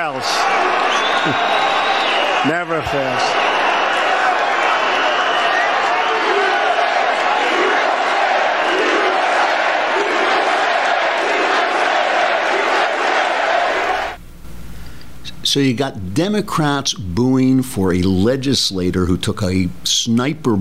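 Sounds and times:
speech: 0:00.0 - 0:00.6, 0:01.2 - 0:01.7, 0:02.4 - 0:03.5, 0:15.6 - 0:20.6
crowd chanting USA: 0:00.0 - 0:14.2.

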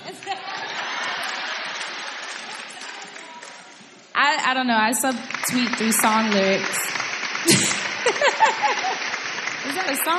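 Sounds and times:
laughter: 0:00.0 - 0:02.8, 0:07.5 - 0:09.3
audience applause: 0:00.0 - 0:03.9, 0:05.1 - 0:10.1
speech: 0:04.3 - 0:08.9, 0:09.6 - 0:10.1.

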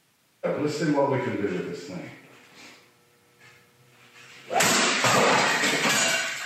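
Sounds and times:
speech: 0:00.4 - 0:02.7
practice driver smashing a Keurig coffee machine: 0:04.4 - 0:06.4.

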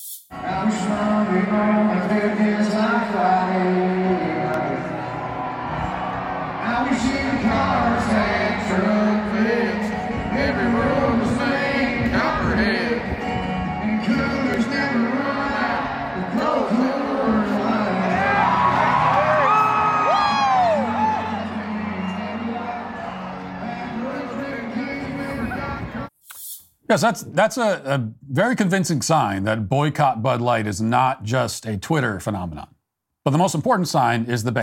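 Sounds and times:
speech: 0:00.3 - 0:05.0, 0:06.8 - 0:09.6, 0:26.9 - 0:34.6
concert audience cheering at a lyric changed to name Coors Light: 0:00.4 - 0:26.1
whoops and shouted voices: 0:04.6 - 0:09.0, 0:17.4 - 0:26.0.

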